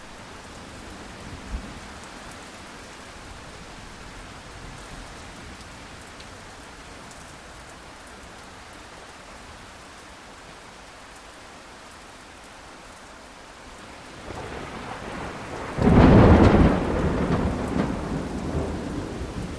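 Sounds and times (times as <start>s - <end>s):
medium rain in a thunderstorm: 0.0s - 19.5s
various direct lightning strikes: 14.3s - 19.5s.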